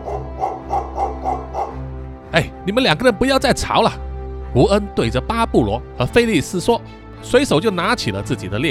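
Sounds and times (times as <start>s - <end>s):
dog barking: 0.0s - 1.9s
speech: 2.4s - 8.6s.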